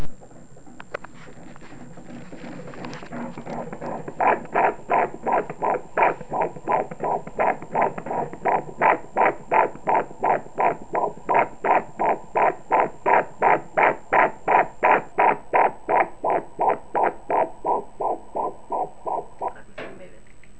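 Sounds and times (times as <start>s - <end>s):
heartbeat: 0.0s - 19.8s.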